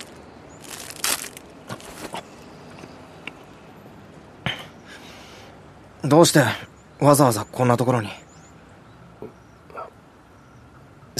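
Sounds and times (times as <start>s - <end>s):
crunchy bites into melon bread: 0.0s - 2.3s
speech: 6.0s - 8.2s.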